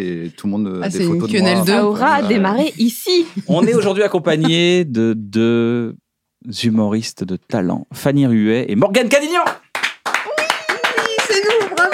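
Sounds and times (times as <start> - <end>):
speech: 0.0 - 9.6, 11.3 - 11.9
small group applauding in a studio: 9.4 - 11.9.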